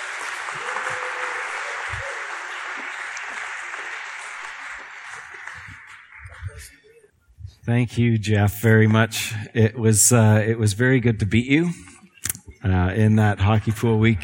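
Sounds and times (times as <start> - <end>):
church congregation applause welcoming a co-preaching couple: 0.0 - 7.0
speech: 7.7 - 11.9, 12.6 - 14.2.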